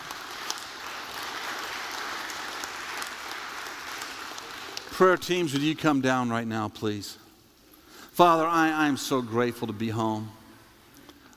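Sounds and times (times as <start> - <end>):
crowd clapping: 0.0 - 5.7
speech: 5.0 - 7.2, 8.2 - 10.4.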